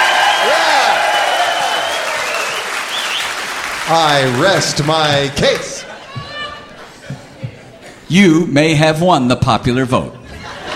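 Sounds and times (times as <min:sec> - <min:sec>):
bowlers in the audience applauding at a live country show: 0:00.0 - 0:06.2
speech: 0:03.9 - 0:05.9, 0:08.1 - 0:10.2
laughter: 0:03.9 - 0:08.0, 0:10.2 - 0:10.7.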